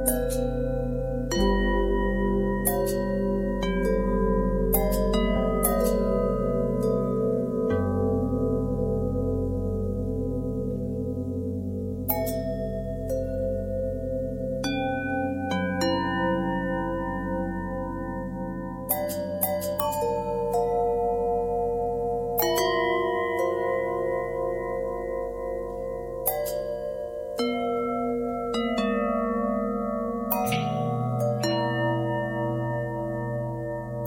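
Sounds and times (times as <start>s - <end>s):
long harmonic bell tone: 0.0s - 34.0s.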